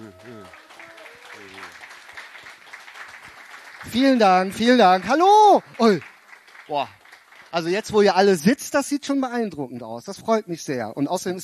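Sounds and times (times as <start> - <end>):
person calling out: 0.0 - 1.2
audience applause: 0.0 - 8.4
speech: 0.1 - 0.6, 3.8 - 6.1, 6.7 - 11.4.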